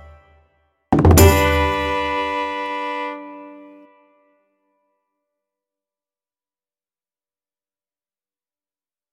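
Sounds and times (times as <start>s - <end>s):
Celtic fiddle playing: 1.0s - 4.1s.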